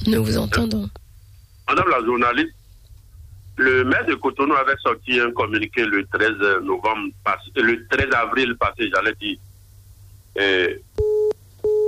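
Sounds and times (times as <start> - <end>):
speech: 0.0 - 1.0, 1.7 - 2.6, 3.6 - 9.5, 10.4 - 10.9
telephone line beeps after a caller's call drops: 11.0 - 11.8.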